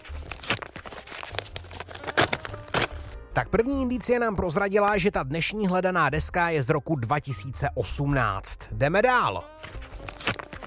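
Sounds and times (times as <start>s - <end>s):
paper envelope of clues being torn open: 0.0s - 3.2s, 9.6s - 10.6s
speech: 3.4s - 9.8s.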